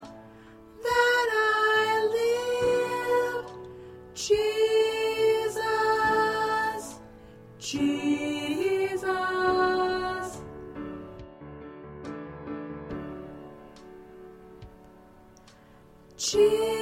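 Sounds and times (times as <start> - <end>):
soprano singing: 0.0 - 11.2, 16.0 - 16.8.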